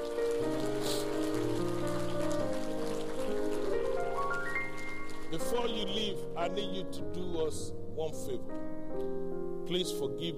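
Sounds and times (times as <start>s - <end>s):
audience clapping: 0.0s - 6.2s
sustained keyboard chords: 0.0s - 10.3s
speech: 5.6s - 10.3s.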